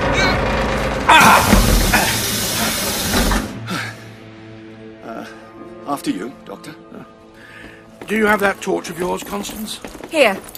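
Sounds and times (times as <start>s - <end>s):
heavy doors being heaved open: 0.0s - 3.7s
speech: 6.0s - 7.2s, 8.1s - 10.5s.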